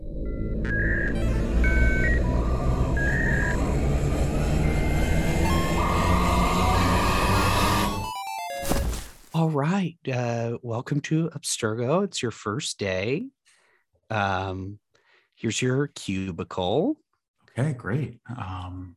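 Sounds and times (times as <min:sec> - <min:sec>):
rising chirping tones: 0:00.0 - 0:08.4
short electronic beeps: 0:00.3 - 0:06.8
reactivator device revving up with whir and rumble: 0:00.6 - 0:08.0
speech: 0:09.4 - 0:13.4, 0:14.1 - 0:14.8, 0:15.4 - 0:17.0, 0:17.6 - 0:18.9.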